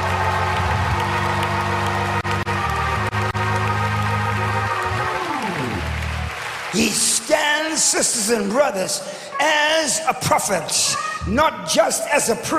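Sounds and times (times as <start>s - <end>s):
people clapping hands: 0.0s - 8.8s
speech: 6.8s - 7.0s, 7.8s - 12.5s.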